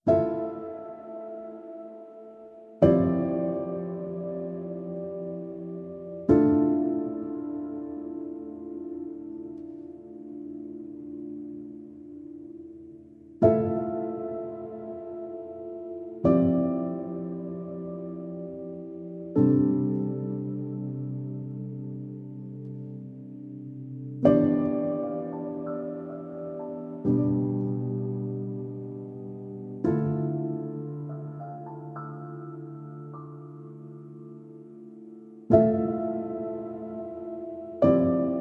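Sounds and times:
solo piano: 0.0s - 38.3s.

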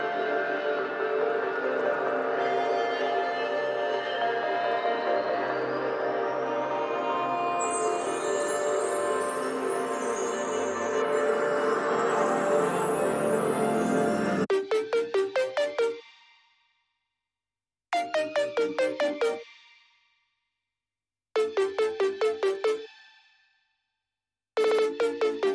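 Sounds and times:
ambient music: 0.0s - 16.1s, 18.0s - 19.6s, 21.4s - 23.2s, 24.6s - 25.5s.

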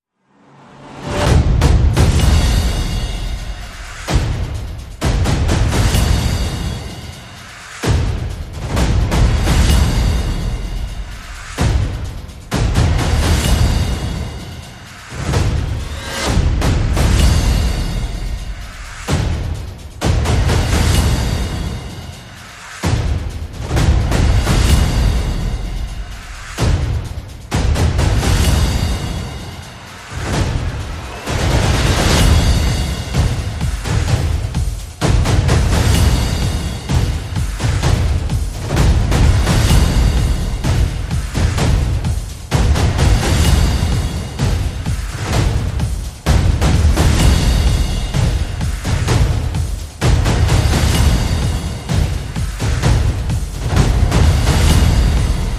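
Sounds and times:
percussion: 0.4s - 55.5s.

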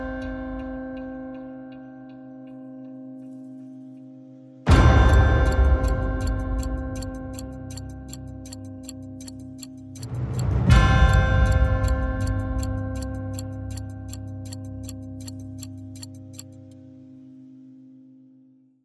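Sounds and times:
clocklike tone in C: 4.7s - 16.8s.

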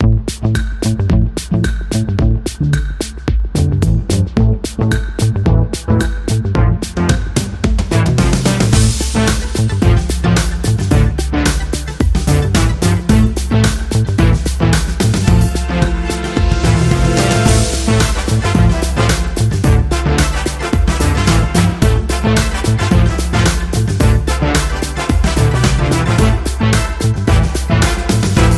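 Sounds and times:
indie music: 0.0s - 28.5s.

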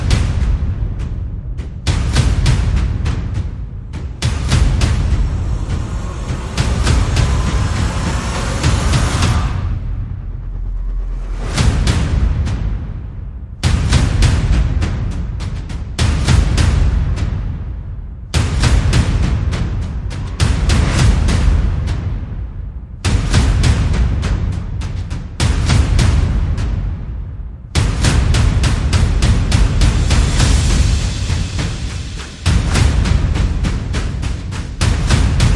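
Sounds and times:
percussion: 0.0s - 35.5s
sound effects: 4.2s - 11.6s.

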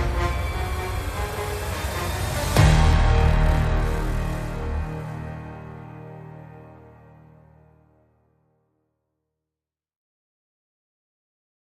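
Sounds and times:
music backing track without drums or strings: 0.0s - 8.1s.

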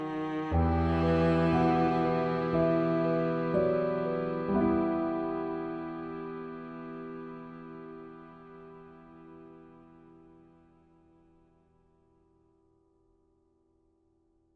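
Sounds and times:
cello: 0.0s - 10.5s.

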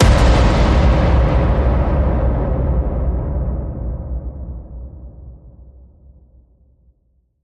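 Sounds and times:
star killer slam impact: 0.0s - 5.0s.

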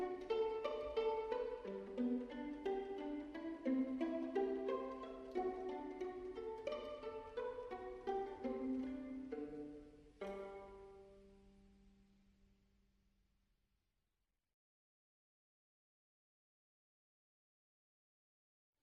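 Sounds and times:
violin concerto in G major: 0.0s - 11.6s.

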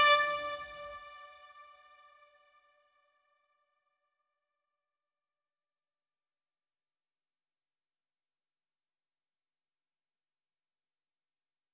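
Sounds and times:
string instrument: 0.0s - 1.7s.

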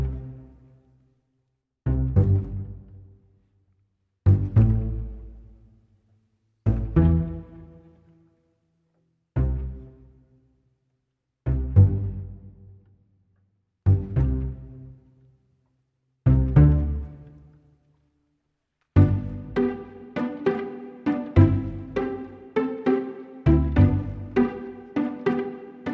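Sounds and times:
reduced strings only: 0.0s - 1.0s, 1.9s - 3.2s, 4.2s - 5.9s, 6.6s - 8.4s, 9.3s - 10.4s, 11.4s - 12.7s, 13.8s - 15.2s, 16.2s - 17.9s, 18.8s - 25.9s.

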